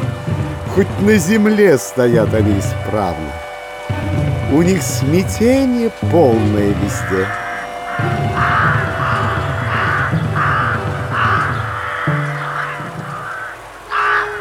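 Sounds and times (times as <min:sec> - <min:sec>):
crows cawing: 0:00.0 - 0:14.4
speech: 0:00.8 - 0:03.4, 0:04.5 - 0:07.4.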